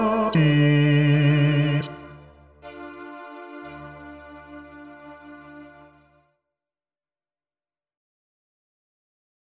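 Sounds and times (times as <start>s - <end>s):
choir bass section singing a requiem: 0.0s - 6.0s.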